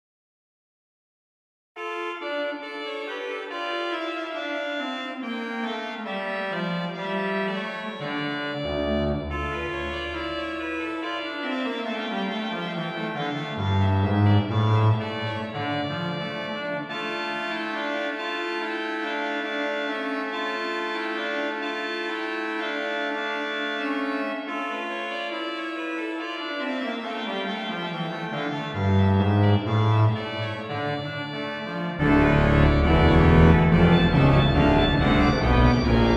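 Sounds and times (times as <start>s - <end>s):
organ music: 1.8s - 36.1s.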